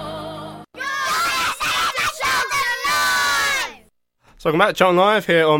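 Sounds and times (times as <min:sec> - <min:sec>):
Charlton football club mascots shouting and screaming after a match: 0:00.7 - 0:03.9
speech: 0:04.5 - 0:05.5.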